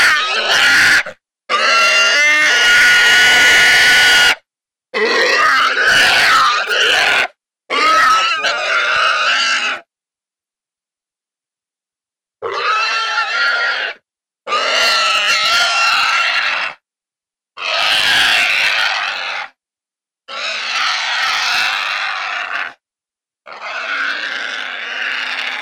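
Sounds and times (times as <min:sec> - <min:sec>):
wild boar distress calls: 0:00.0 - 0:04.4, 0:05.0 - 0:09.9, 0:12.4 - 0:16.8, 0:17.6 - 0:19.6, 0:20.3 - 0:22.8, 0:23.4 - 0:25.6.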